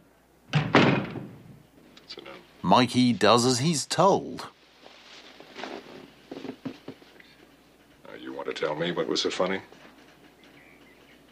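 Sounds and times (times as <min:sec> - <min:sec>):
door swinging shut with solid thuds: 0:00.5 - 0:01.4
speech: 0:02.1 - 0:04.6, 0:08.6 - 0:09.8.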